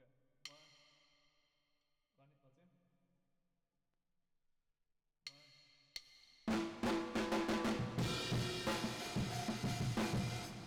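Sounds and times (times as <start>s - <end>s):
drums with reverb: 6.5s - 10.6s.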